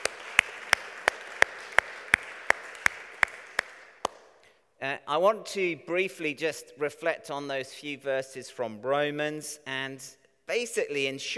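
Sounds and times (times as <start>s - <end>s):
audience applause: 0.0s - 4.1s
speech: 4.8s - 11.3s.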